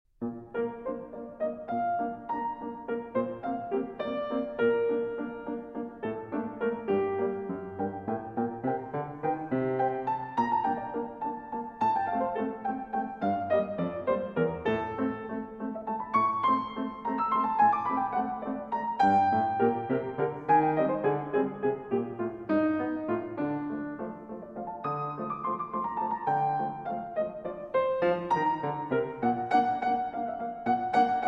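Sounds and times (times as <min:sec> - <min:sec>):
prelude in B-flat major allegretto poco moderato: 0:00.2 - 0:31.2.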